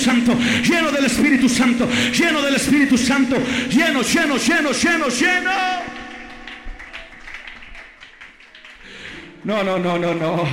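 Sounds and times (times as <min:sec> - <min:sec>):
speech: 0:00.0 - 0:05.9, 0:09.4 - 0:10.5
group clapping: 0:04.9 - 0:10.5.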